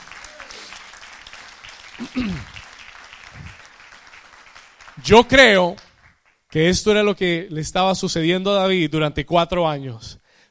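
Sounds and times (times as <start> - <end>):
loud applause from audience: 0.0 - 6.5
speech: 2.0 - 2.5, 5.0 - 5.8, 6.5 - 10.2.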